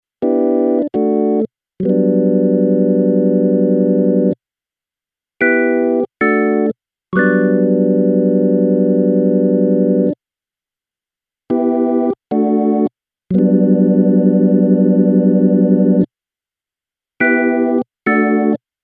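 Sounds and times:
Vox Continental organ with percussion, vibrato and chorus: 0.2s - 4.4s, 5.4s - 10.2s, 11.5s - 16.1s, 17.2s - 18.6s.

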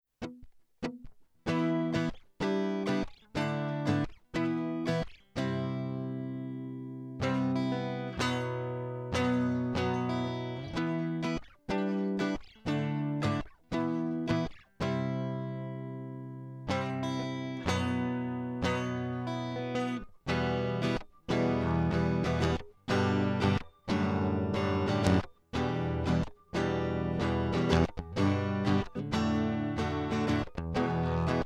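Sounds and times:
electric guitar through Avalon DI and Digi 002 without dbx: 0.2s - 31.4s.

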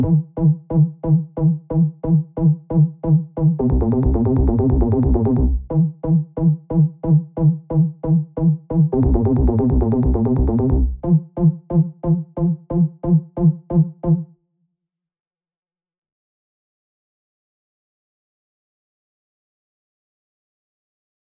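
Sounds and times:
90s bass arpeggio: 0.0s - 13.9s.

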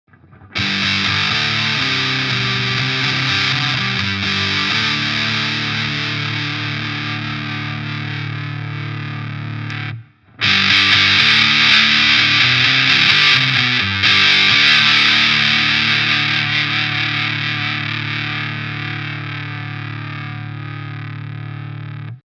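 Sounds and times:
Electro-Harmonix Sovtek Big Muff Pi fuzz guitar with full sustain and mid boost: 0.2s - 22.2s.

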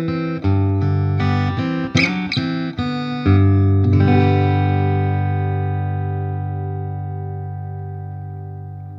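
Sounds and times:
Takamine Thinline guitar fingerpicking: 0.0s - 8.9s.

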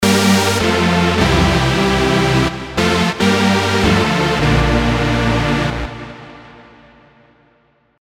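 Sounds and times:
classic JP synth lead: 0.0s - 6.7s.

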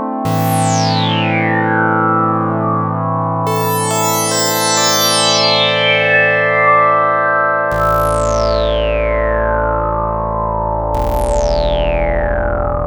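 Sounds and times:
JP8 fat filter sweep synth pad: 0.2s - 12.8s.

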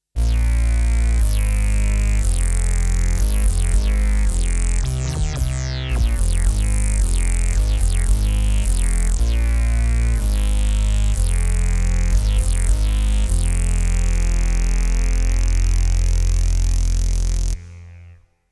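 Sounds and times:
Emax OB 1 synth bass: 0.2s - 18.2s.

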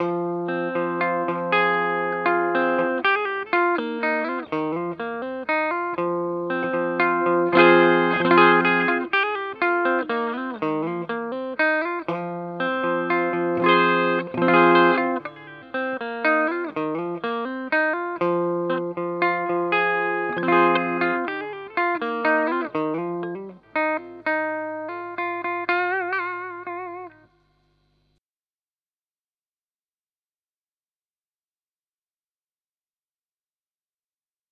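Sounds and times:
Ibanez Artcore guitar: 0.0s - 27.4s.

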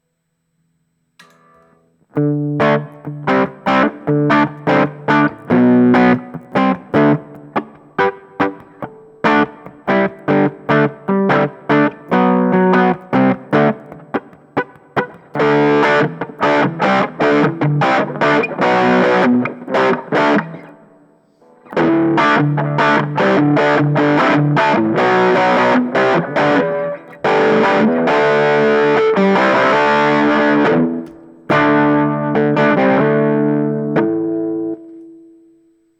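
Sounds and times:
overdriven amp: 0.0s - 35.9s.

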